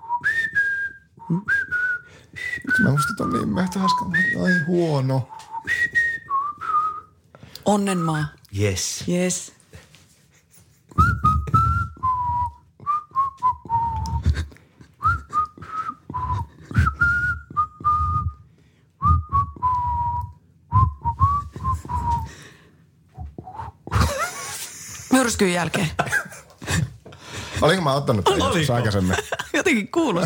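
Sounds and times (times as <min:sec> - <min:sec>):
person whistling a slow lilting tango melody: 0:00.0 - 0:07.2, 0:11.0 - 0:14.4, 0:15.0 - 0:22.4, 0:23.2 - 0:24.0
speech: 0:01.3 - 0:01.7, 0:02.8 - 0:05.8, 0:07.7 - 0:09.6, 0:25.4 - 0:26.2, 0:27.6 - 0:30.2
laughter: 0:23.9 - 0:30.2.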